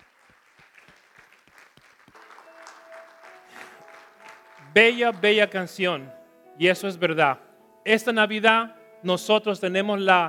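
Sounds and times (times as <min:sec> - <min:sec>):
audience applauding: 0:00.0 - 0:05.8
speech: 0:04.8 - 0:10.2.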